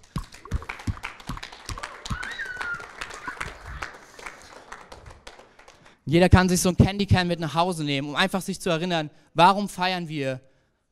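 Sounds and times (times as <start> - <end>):
audience clapping: 0.0 - 6.1
speech: 6.1 - 10.5.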